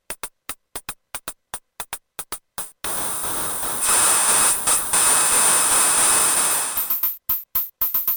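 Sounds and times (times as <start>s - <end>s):
high frequency sounds: 2.9s - 7.2s.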